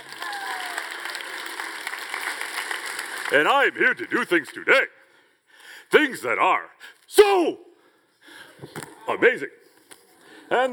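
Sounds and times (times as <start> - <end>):
audience applause: 0.0 - 4.3
speech: 3.3 - 5.0, 5.9 - 7.7, 8.6 - 9.6, 10.5 - 10.7.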